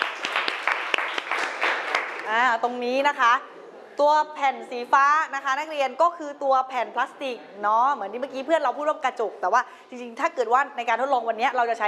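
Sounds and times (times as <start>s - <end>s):
classroom applause: 0.0s - 2.4s
speech: 2.3s - 11.8s.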